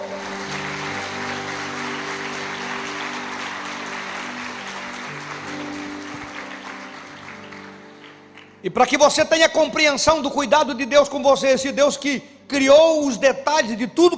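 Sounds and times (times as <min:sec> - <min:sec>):
audience applause: 0:00.0 - 0:08.6
sustained low keyboard chords: 0:00.0 - 0:10.2
speech: 0:08.6 - 0:14.1.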